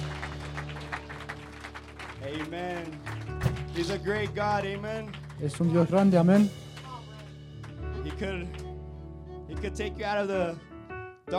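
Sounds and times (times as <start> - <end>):
audience applause: 0.0 - 8.7
speech: 2.2 - 6.6, 8.2 - 8.6, 9.6 - 10.7.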